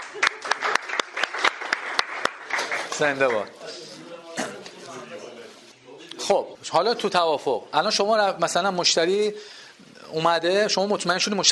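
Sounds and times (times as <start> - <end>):
applause at a gathering honouring northerners: 0.0 - 3.5
speech: 3.0 - 3.6, 6.3 - 11.5.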